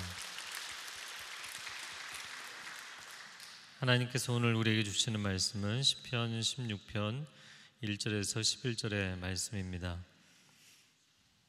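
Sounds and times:
audience applause: 0.0 - 3.7
speech: 3.8 - 10.1.

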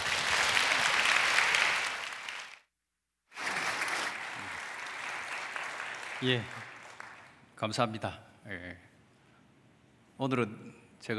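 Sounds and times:
audience applause: 0.0 - 2.6, 3.4 - 7.4
speech: 6.2 - 6.7, 7.6 - 8.9, 10.2 - 11.1.

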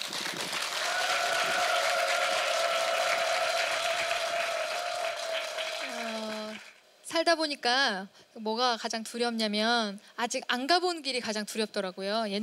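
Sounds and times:
crowd clapping loudly: 0.0 - 6.8
speech: 7.2 - 12.4.

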